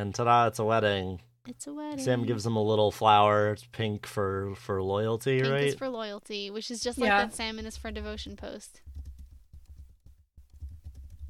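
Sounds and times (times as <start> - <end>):
speech: 0.0 - 8.9
typing on a computer keyboard: 8.8 - 11.2.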